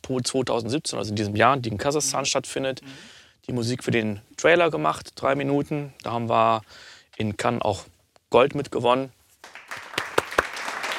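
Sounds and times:
speech: 0:00.1 - 0:09.2
dubbed-in applause: 0:09.4 - 0:10.9.

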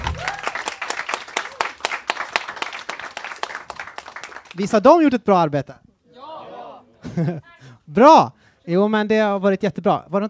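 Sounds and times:
audience applause: 0:00.0 - 0:04.6
speech: 0:04.6 - 0:05.8, 0:07.1 - 0:10.2
laughter: 0:07.0 - 0:07.6.

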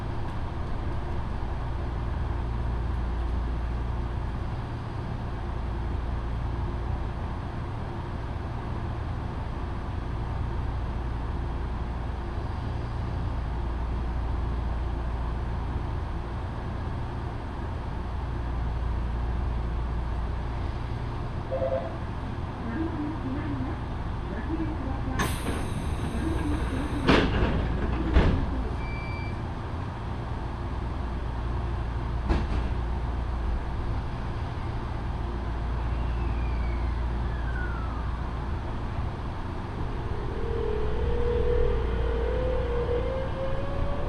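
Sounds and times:
Yoro Railway train rumble and hum: 0:00.0 - 0:44.0.

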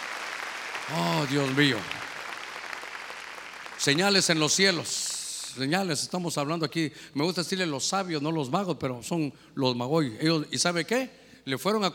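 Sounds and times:
audience clapping hands: 0:00.0 - 0:06.2
speech: 0:00.9 - 0:02.0, 0:03.8 - 0:11.9.

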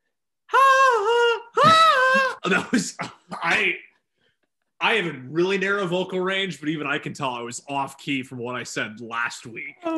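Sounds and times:
person imitating a singer's scream: 0:00.5 - 0:02.4
speech: 0:02.5 - 0:03.8, 0:04.8 - 0:09.9.

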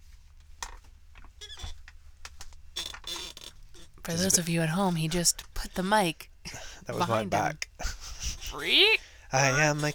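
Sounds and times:
squeaky chair creaking: 0:01.4 - 0:01.8, 0:02.7 - 0:04.4
speech: 0:04.0 - 0:07.6, 0:08.5 - 0:09.9.

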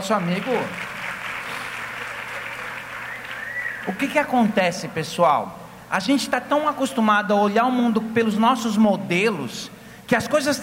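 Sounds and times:
speech: 0:00.0 - 0:00.9, 0:03.9 - 0:10.6
crowd applauding: 0:00.0 - 0:04.3.

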